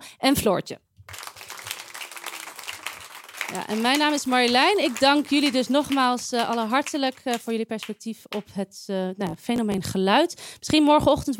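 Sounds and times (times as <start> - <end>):
speech: 0.2 - 0.9, 3.5 - 11.3
audience applause: 1.1 - 7.2.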